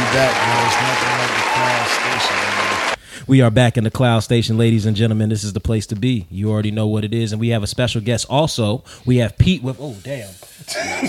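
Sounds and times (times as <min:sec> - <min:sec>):
audience applause: 0:00.0 - 0:03.0
man speaking loudly: 0:00.0 - 0:11.0
speech: 0:00.1 - 0:11.0.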